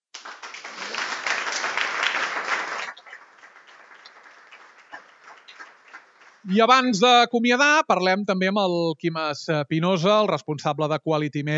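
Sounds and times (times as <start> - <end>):
audience applause: 0.0 - 6.9
speech: 6.4 - 11.5.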